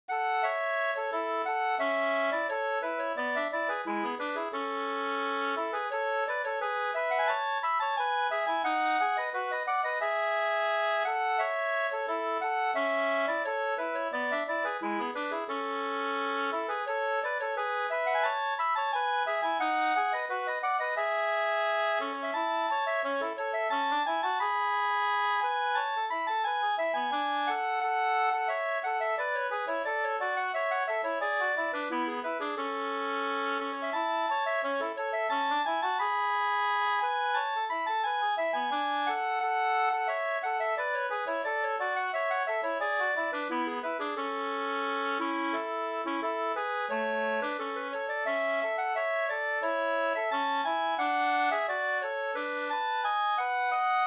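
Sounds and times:
folk walking tune: 0.1 - 54.0.

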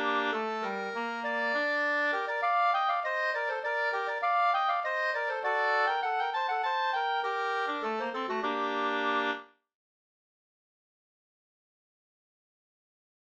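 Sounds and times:
polska folk dance tune: 0.0 - 9.4.

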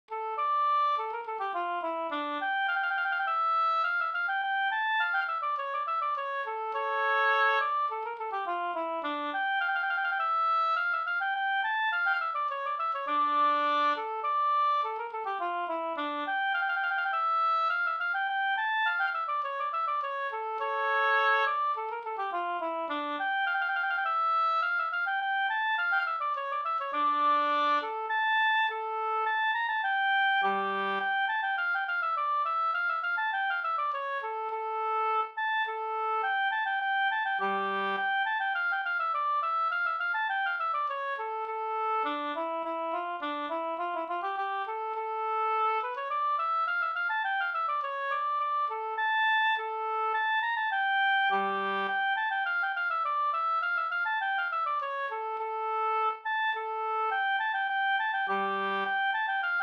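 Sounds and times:
polska folk dance tune: 0.1 - 59.6.

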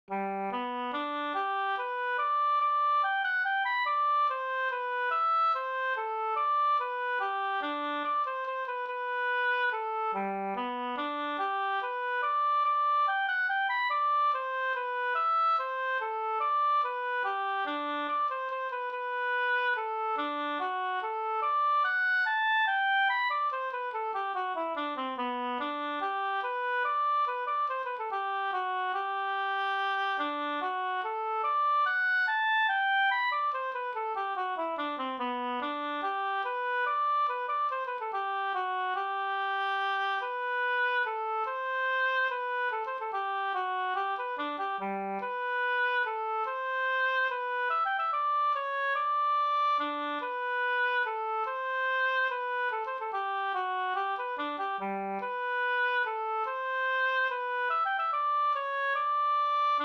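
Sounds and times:
minuet: 0.0 - 59.8.

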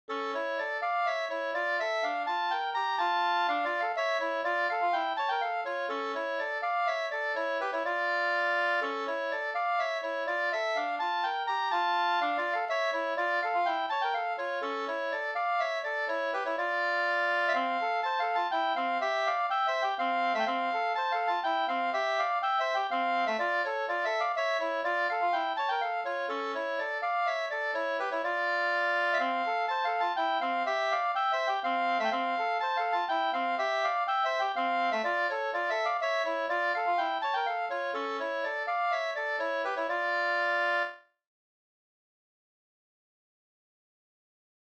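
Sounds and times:
polska springlek folk dance music: 0.1 - 41.0.

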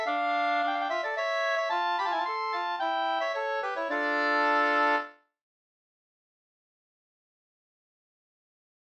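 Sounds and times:
two-part polska: 0.0 - 5.2.

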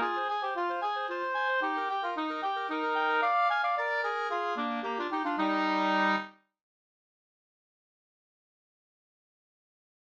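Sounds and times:
slangpolska folk dance tune: 0.0 - 6.3.

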